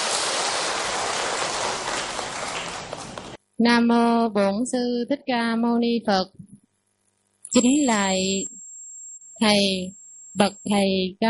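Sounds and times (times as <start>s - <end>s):
audience applause: 0.0s - 3.4s
speech: 3.6s - 6.4s, 7.6s - 8.6s, 9.4s - 11.2s.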